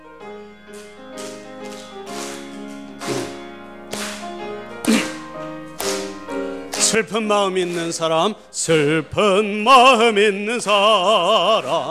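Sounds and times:
audience clapping hands: 0:00.7 - 0:08.3
speech: 0:06.9 - 0:11.8.

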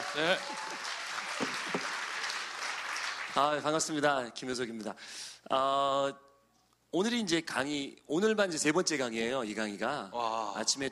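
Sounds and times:
audience applause: 0:00.0 - 0:03.6
speech: 0:00.2 - 0:01.5, 0:03.4 - 0:06.3, 0:06.9 - 0:10.9.

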